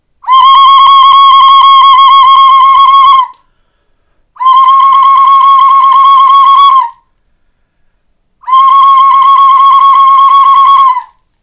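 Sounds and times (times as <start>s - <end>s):
whistle: 0.2s - 3.5s, 4.4s - 7.2s, 8.4s - 11.2s.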